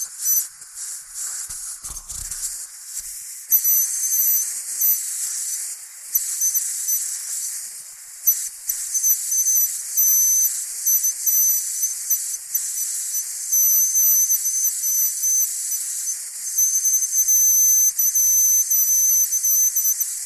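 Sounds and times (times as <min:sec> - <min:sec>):
dentist suction tool whistling: 0:00.0 - 0:20.2.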